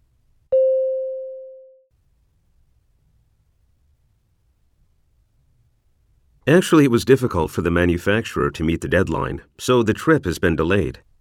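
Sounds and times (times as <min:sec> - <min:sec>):
single mid-pitched beep tone: 0:00.5 - 0:01.9
speech: 0:06.5 - 0:11.1.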